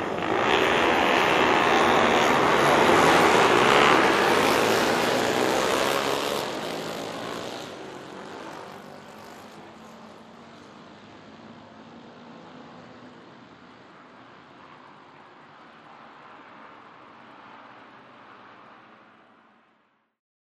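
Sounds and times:
motocross motorcycle engines revving: 0.0 - 10.8
motocross motorcycle engines roaring: 0.0 - 12.9.

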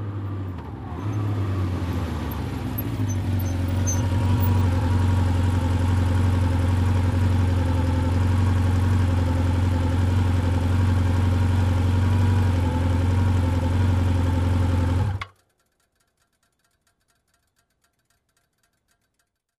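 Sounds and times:
motorcycle approaching and turning off: 0.0 - 15.4.

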